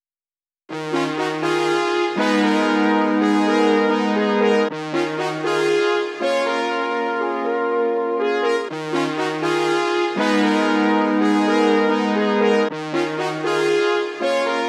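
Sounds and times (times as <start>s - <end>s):
brass in F minor: 0.7s - 14.6s.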